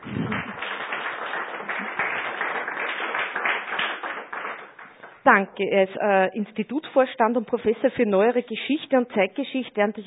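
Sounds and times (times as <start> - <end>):
audience applause: 0.0 - 5.1
speech: 5.2 - 10.0.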